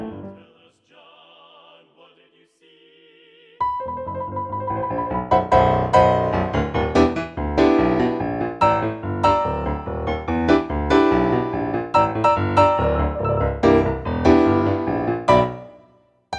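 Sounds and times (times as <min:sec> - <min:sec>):
practice track accompaniment: 0:03.6 - 0:15.8.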